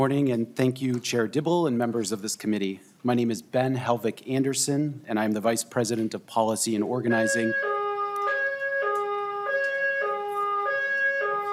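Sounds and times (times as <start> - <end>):
speech: 0.0 - 7.7
building emergency alarm siren: 7.1 - 11.5.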